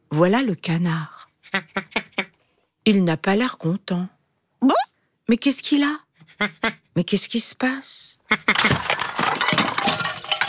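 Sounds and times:
speech: 0:00.1 - 0:02.0, 0:02.9 - 0:09.0
toys and books knocked over and falling: 0:08.5 - 0:10.4.

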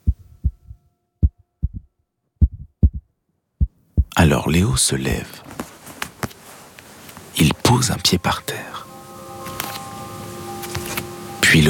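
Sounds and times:
heartbeat: 0:00.0 - 0:04.2
speech: 0:04.2 - 0:05.6, 0:07.7 - 0:08.8.

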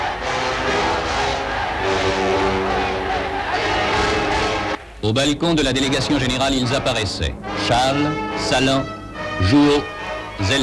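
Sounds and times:
crowd cheering and acclaiming: 0:00.0 - 0:04.9
speech: 0:05.1 - 0:10.6.

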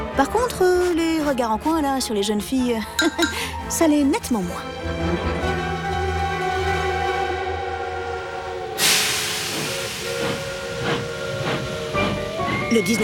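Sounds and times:
speech: 0:00.2 - 0:05.5, 0:12.7 - 0:13.0
steam locomotive whistle: 0:06.7 - 0:13.0
steam locomotive hissing steam: 0:08.8 - 0:13.0.

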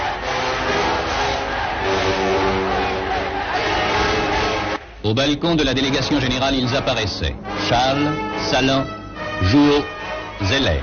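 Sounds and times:
crowd cheering and acclaiming: 0:00.0 - 0:05.0
speech: 0:05.1 - 0:10.8.

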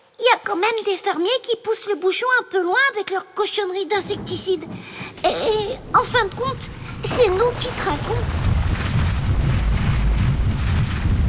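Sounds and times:
speech: 0:00.4 - 0:08.5
mudslide crashing over cave entrance: 0:04.0 - 0:11.2.

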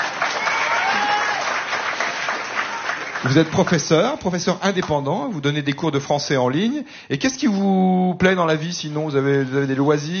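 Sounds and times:
audience applause: 0:00.0 - 0:04.2
speech: 0:03.2 - 0:10.1.

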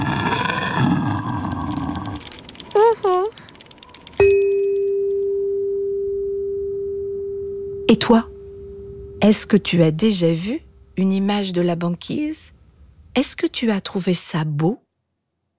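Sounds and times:
polar bear roaring: 0:00.0 - 0:03.2
bright chime: 0:04.2 - 0:09.5
speech: 0:08.0 - 0:08.3, 0:09.2 - 0:12.6, 0:13.2 - 0:14.8.

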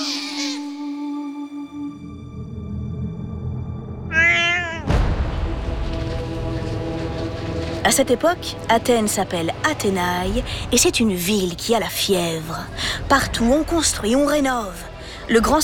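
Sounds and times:
low rumbling drone with steady tones: 0:01.9 - 0:15.6
newborn baby crying: 0:04.1 - 0:04.9
speech: 0:07.9 - 0:15.6.

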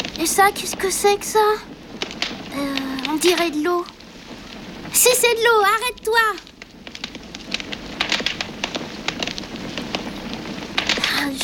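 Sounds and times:
fire crackling in a fireplace: 0:00.0 - 0:11.4
speech: 0:00.2 - 0:01.8, 0:02.6 - 0:04.0, 0:05.0 - 0:06.5.

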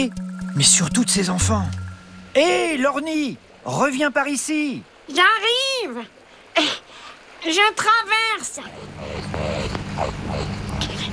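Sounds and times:
speech: 0:00.0 - 0:01.8, 0:02.4 - 0:06.8, 0:07.4 - 0:10.5
rakali, Australian water rat, growling: 0:08.5 - 0:11.1.

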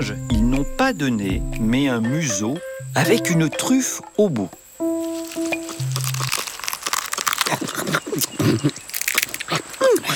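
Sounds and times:
speech: 0:00.0 - 0:00.2, 0:00.8 - 0:04.6, 0:08.5 - 0:08.8
lemur chewing tough leaves and tamarind pods: 0:05.0 - 0:10.1.

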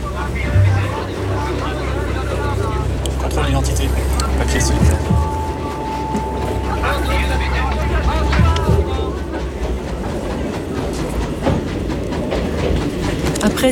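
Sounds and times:
clickety-clack wheel noise: 0:00.0 - 0:13.6
train rumbling on rails: 0:00.0 - 0:13.6
voices murmuring: 0:00.0 - 0:13.6
thin high tone: 0:00.4 - 0:10.5.

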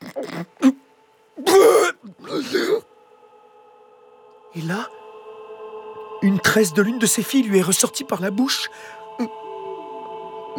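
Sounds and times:
voice imitating loud hiccups: 0:00.0 - 0:00.8, 0:01.4 - 0:02.8
speech: 0:04.6 - 0:05.0, 0:06.3 - 0:09.4.

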